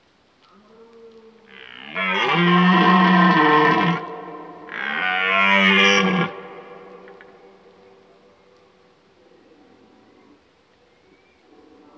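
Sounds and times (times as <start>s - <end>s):
red deer stag bellowing: 1.6s - 7.4s.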